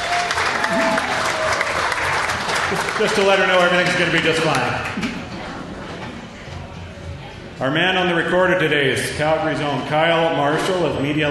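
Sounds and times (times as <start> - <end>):
audience applause at a live event in Calgary welcoming a speaker: 0.0 - 5.0
speech: 2.7 - 5.1, 7.6 - 11.3.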